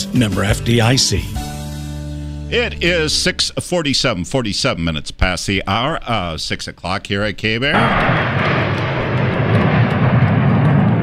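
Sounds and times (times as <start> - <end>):
speech: 0.1 - 1.5, 2.5 - 8.9
Blue Angels military jet aircraft flying into Billings: 7.8 - 11.0.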